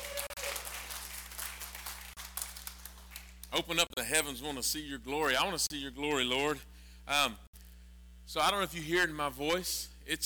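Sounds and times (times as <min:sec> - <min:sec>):
audience clapping: 0:00.0 - 0:03.8
low steady hum: 0:00.0 - 0:10.2
speech: 0:03.5 - 0:07.4, 0:08.3 - 0:10.2.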